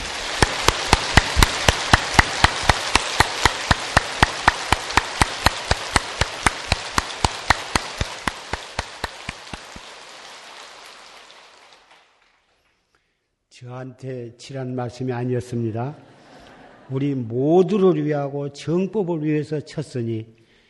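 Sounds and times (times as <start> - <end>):
audience applause: 0.0 - 12.5
speech: 13.7 - 16.1, 16.9 - 20.4.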